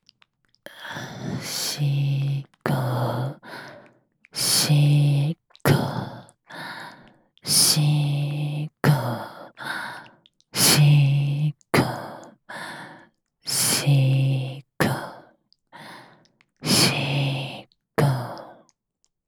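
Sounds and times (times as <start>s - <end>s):
whispering: 0.7s - 3.8s, 4.4s - 6.3s, 7.4s - 9.6s, 10.6s - 12.3s, 13.5s - 15.2s, 16.6s - 18.6s.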